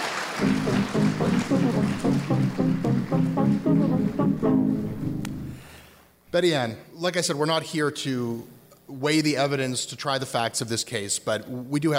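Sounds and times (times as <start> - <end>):
audience clapping: 0.0 - 5.6
speech: 0.4 - 5.0, 6.3 - 11.9.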